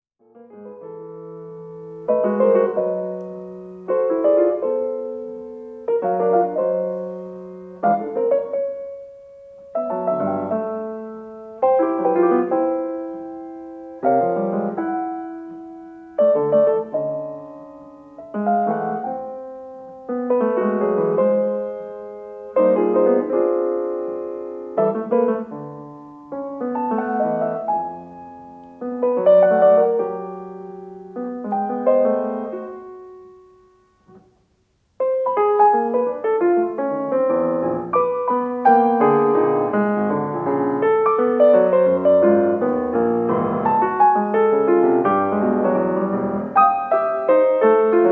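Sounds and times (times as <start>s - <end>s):
piano piece: 0.2s - 48.1s.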